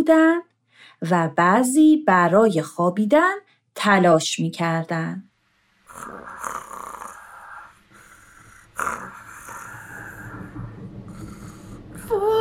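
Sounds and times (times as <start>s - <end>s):
speech: 0.0s - 5.3s, 6.0s - 6.9s
snoring: 5.9s - 12.1s.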